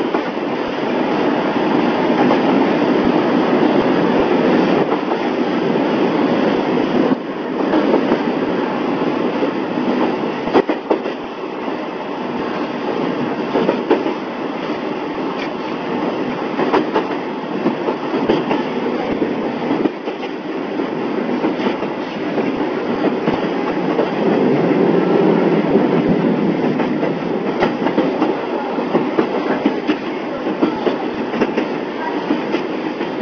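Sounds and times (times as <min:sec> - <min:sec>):
Joumou Electric Railway DeHa 350 train departing Akagi Station: 0:00.0 - 0:33.1.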